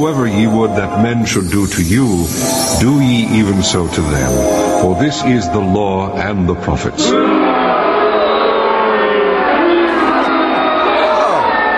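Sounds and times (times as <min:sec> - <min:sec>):
speech: 0:00.0 - 0:07.6
crowd booing: 0:07.0 - 0:11.7.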